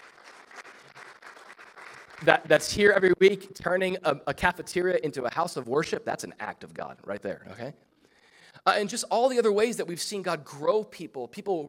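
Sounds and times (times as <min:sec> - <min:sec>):
audience applause: 0:00.0 - 0:02.7
speech: 0:02.2 - 0:07.9, 0:08.5 - 0:11.6.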